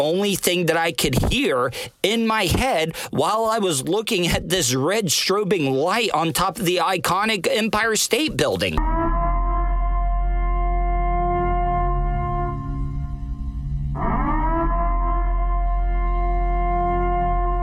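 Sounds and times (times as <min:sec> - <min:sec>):
speech: 0:00.0 - 0:09.0
Purge-style warning siren: 0:08.8 - 0:17.6.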